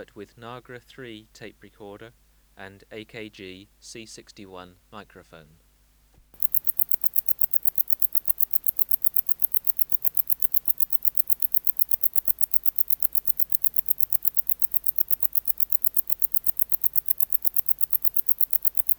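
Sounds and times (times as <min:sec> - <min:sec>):
speech: 0:00.0 - 0:05.6
wart-biter clicking song: 0:06.4 - 0:18.9.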